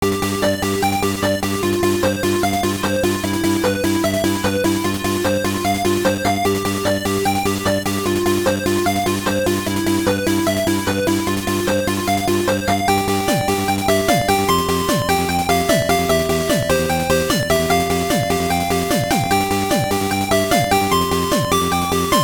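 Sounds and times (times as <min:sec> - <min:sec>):
unused Game Boy music track: 0:00.1 - 0:22.2.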